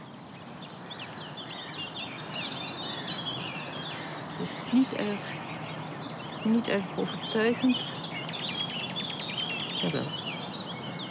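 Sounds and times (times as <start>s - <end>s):
nightingale singing: 0.6s - 11.0s
speech: 4.4s - 5.4s, 6.4s - 8.1s, 9.8s - 10.2s.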